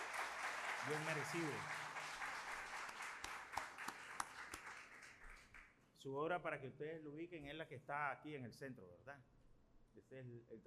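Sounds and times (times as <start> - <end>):
audience applause: 0.0 - 5.6
speech: 0.8 - 1.8, 6.0 - 9.3, 10.0 - 10.6.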